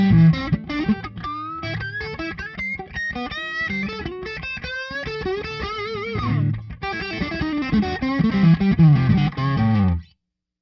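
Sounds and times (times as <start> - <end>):
guitar on neck pickup: 0.0 - 10.2.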